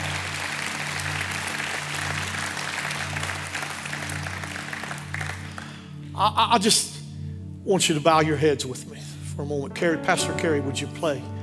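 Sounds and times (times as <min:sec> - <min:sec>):
audience clapping hands: 0:00.0 - 0:06.0
speech: 0:06.2 - 0:07.0, 0:07.7 - 0:11.4.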